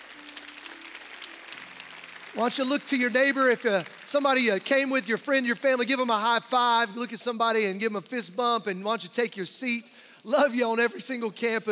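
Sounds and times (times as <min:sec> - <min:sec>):
audience hand clapping: 0:00.0 - 0:07.2
speech: 0:02.3 - 0:11.7.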